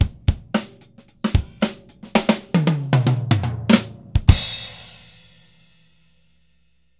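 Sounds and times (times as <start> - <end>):
ending drum loops: 0.0 - 4.7.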